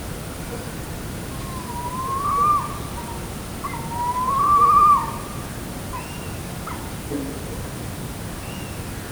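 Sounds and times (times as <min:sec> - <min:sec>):
tawny owl giving a short rising call: 0:01.4 - 0:05.3.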